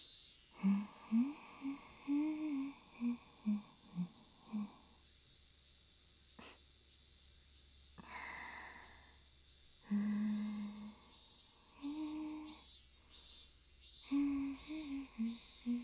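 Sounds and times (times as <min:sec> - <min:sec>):
girl singing a lullaby: 0:00.0 - 0:04.8, 0:09.9 - 0:15.8.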